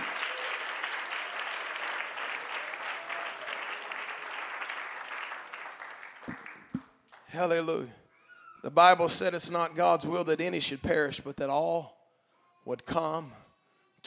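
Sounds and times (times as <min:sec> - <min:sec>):
audience clapping hands: 0:00.0 - 0:07.3
speech: 0:07.3 - 0:08.0, 0:08.6 - 0:12.0, 0:12.6 - 0:13.4.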